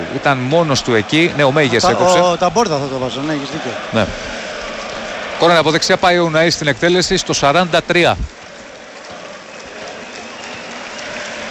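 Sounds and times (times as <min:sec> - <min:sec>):
stadium crowd applauding a player: 0:00.0 - 0:11.4
speech: 0:00.1 - 0:04.3, 0:05.4 - 0:08.4.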